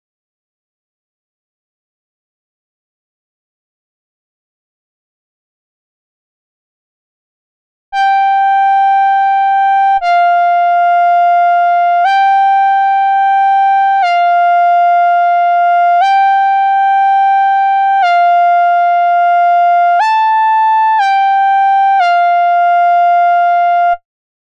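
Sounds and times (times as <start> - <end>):
Moog synthesizer: 8.0 - 24.0.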